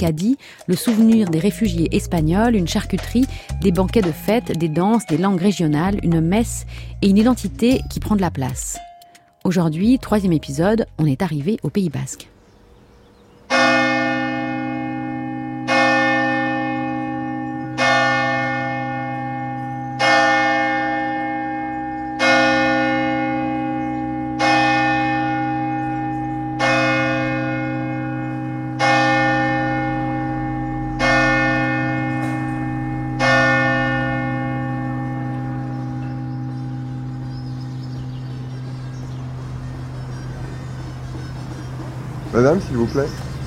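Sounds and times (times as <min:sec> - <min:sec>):
speech: 0:00.0 - 0:12.3, 0:42.6 - 0:43.2
church bell in the Basque Country striking the hour: 0:13.5 - 0:41.5.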